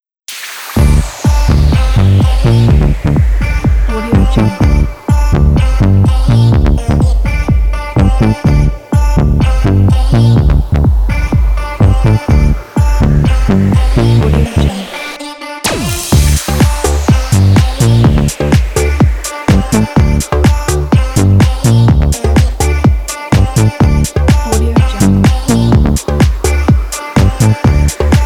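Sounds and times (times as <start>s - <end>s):
fashion electronica music: 0.3s - 28.2s.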